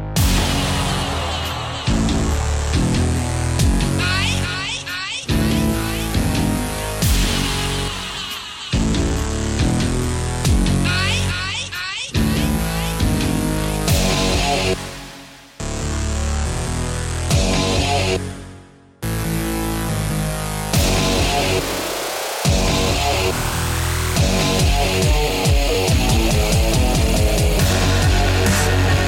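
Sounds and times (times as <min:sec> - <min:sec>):
electro dubstep remix: 0:00.2 - 0:18.5, 0:19.1 - 0:29.0.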